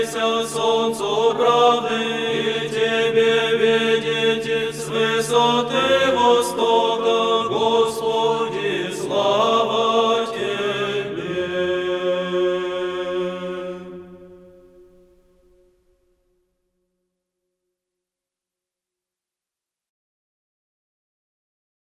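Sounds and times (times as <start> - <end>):
monastery choir chanting a Christmas troparion: 0.0 - 14.4.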